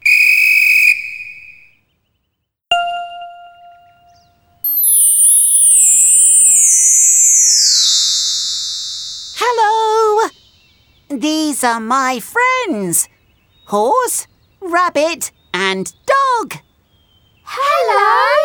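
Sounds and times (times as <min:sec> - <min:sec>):
shrill steady whistle blast: 0:00.0 - 0:01.8, 0:03.7 - 0:09.5
bright ding: 0:02.7 - 0:09.4
long high shimmering tone sliding downward: 0:02.7 - 0:10.0
speech: 0:11.2 - 0:16.6.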